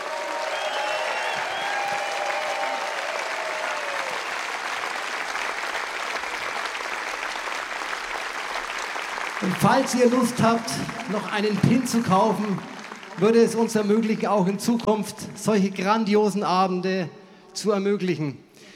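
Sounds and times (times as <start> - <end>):
audience applause: 0.0 - 14.7
speech: 9.4 - 18.4.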